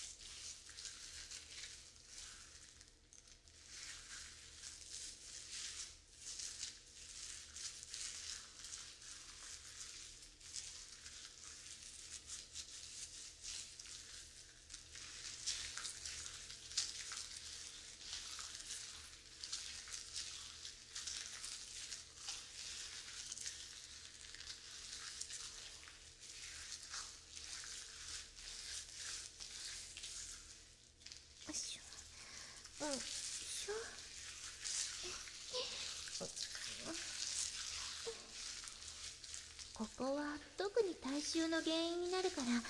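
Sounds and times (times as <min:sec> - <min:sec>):
fingers scrubbing foamy lathered hair: 0:00.0 - 0:42.6
speech: 0:40.0 - 0:42.6.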